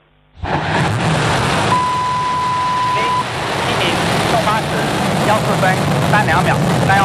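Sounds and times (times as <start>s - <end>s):
steady tone: 0.0s - 5.4s
Long March 7 Y11 rocket ignition and liftoff roar at Wenchang: 0.4s - 7.0s.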